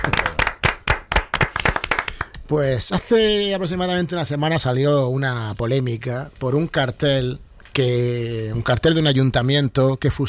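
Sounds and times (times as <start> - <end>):
audience applause: 0.0 - 2.3
speech: 2.5 - 10.2.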